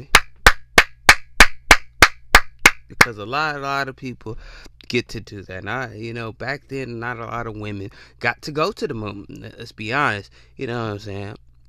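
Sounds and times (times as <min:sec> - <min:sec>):
hand claps: 0:00.0 - 0:03.2
speech: 0:03.1 - 0:11.4.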